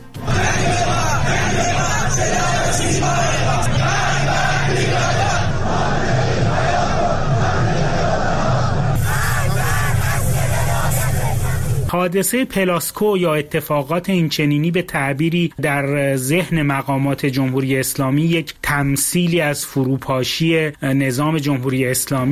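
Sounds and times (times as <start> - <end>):
protest crowd chanting: 0.0 - 11.9
speech: 11.9 - 22.3.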